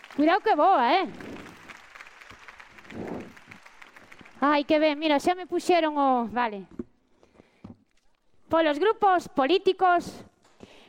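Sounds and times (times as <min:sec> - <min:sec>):
audience applause: 0:00.0 - 0:05.1
speech: 0:00.2 - 0:01.3, 0:04.4 - 0:06.8, 0:08.5 - 0:10.3.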